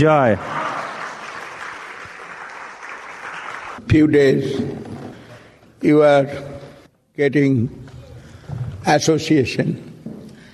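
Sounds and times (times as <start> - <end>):
speech: 0.0 - 0.6, 3.9 - 4.9, 5.8 - 6.5, 7.2 - 7.8, 8.8 - 9.9
applause welcoming a speaker at a Vaishnava religious gathering: 0.3 - 3.8.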